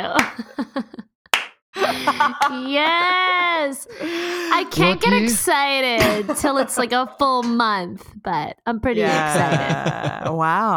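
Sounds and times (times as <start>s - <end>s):
hand clapping: 0.0s - 0.5s, 1.3s - 1.6s, 2.4s - 3.1s, 7.4s - 7.6s
laughter: 0.3s - 1.0s, 1.8s - 5.3s, 9.0s - 10.6s
speech: 2.2s - 10.7s.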